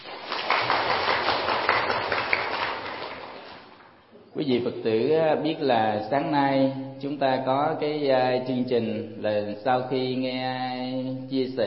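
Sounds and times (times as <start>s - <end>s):
crowd applause: 0.0s - 3.8s
speech: 4.4s - 11.6s.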